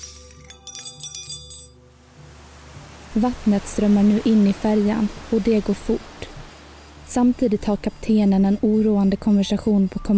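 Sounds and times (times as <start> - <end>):
cutlery ashtrays glass and porcelain shattering on floor: 0.0 - 1.8
speech: 3.1 - 6.1, 7.1 - 10.1.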